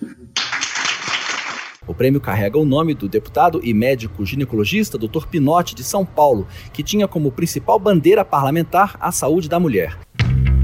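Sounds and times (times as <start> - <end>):
applause for a team: 0.4 - 1.8
speech: 2.0 - 10.0.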